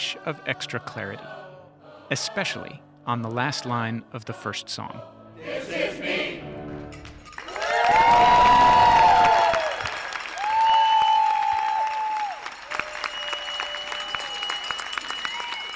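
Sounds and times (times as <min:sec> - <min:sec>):
speech: 0:00.2 - 0:01.4, 0:02.1 - 0:06.1
raucous applause after choir performance: 0:07.3 - 0:15.7.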